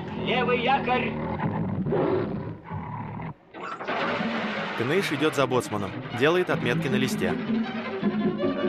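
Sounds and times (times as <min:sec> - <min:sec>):
tigers roaring at the bars of a cage: 0:00.0 - 0:05.2
speech: 0:00.3 - 0:02.4, 0:03.7 - 0:08.5.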